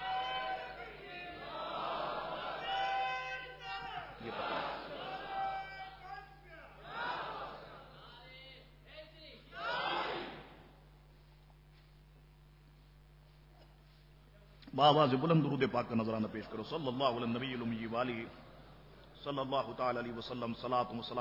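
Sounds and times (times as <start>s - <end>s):
crowd at a gathering shouting a slogan in unison: 0.0s - 5.8s, 6.8s - 7.9s, 9.6s - 10.6s
speech: 14.8s - 18.4s, 19.2s - 21.1s.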